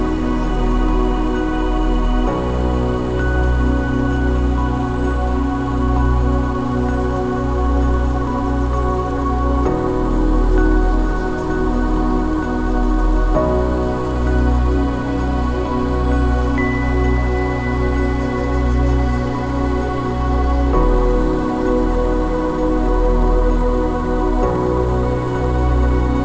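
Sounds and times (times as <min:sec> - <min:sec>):
ambient sound: 0:00.0 - 0:26.2.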